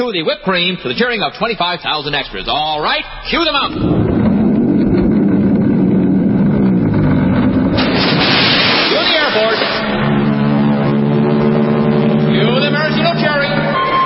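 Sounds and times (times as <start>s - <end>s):
speech: 0.0s - 4.1s
air force planes roaring overhead: 2.0s - 7.8s, 9.1s - 14.0s.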